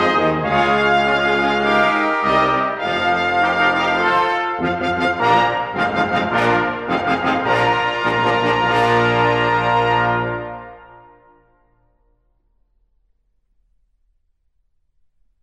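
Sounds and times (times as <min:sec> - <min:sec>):
fanfare: 0:00.0 - 0:11.3.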